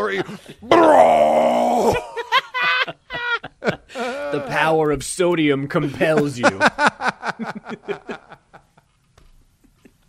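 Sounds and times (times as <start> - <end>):
laughter: 0.0 - 0.7, 1.8 - 4.6, 5.8 - 8.9
speech: 0.1 - 2.1, 4.4 - 8.4
huge exaggerated burp: 0.7 - 2.2.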